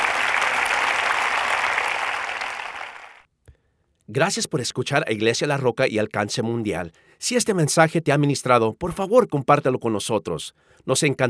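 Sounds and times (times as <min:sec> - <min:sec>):
audience applause: 0:00.0 - 0:03.2
speech: 0:04.1 - 0:11.2.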